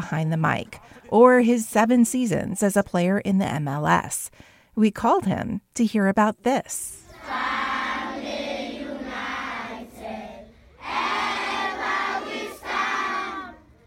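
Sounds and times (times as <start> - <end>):
speech: 0.0 - 7.4
schoolchildren chanting together at a flag raising at Education for All, Freetown: 7.0 - 13.7.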